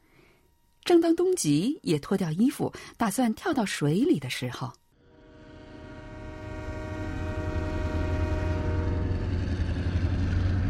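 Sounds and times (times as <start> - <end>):
speech: 0.9 - 4.8
train roaring past: 5.0 - 10.6.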